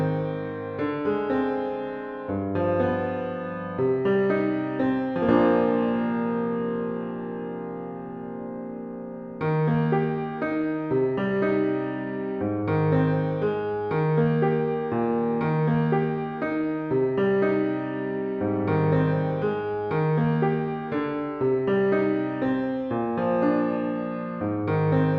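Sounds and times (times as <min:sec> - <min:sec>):
piano playing a carol: 0:00.0 - 0:25.1.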